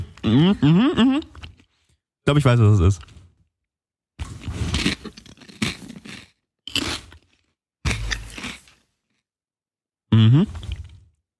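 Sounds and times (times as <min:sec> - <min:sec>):
speech: 0:00.3 - 0:01.3, 0:02.3 - 0:03.2
crunching and chewing a crisp seaweed snack: 0:04.8 - 0:08.8.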